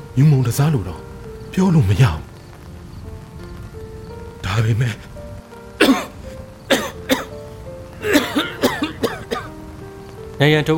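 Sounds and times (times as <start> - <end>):
speech: 0.2 - 2.3, 4.6 - 5.1, 5.8 - 6.1, 10.4 - 10.7
person coughing violently: 5.8 - 7.3, 8.0 - 9.5.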